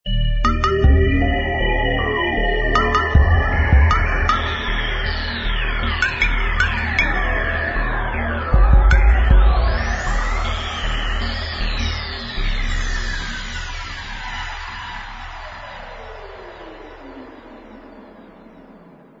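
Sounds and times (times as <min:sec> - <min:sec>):
theme music: 0:00.1 - 0:13.0.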